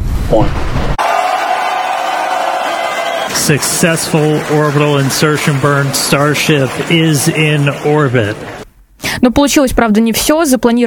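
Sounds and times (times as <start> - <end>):
speech: 0.3 - 1.0, 3.4 - 8.6, 9.2 - 10.8
mission control staff cheering and applauding as Starship reaches orbit: 1.0 - 8.6.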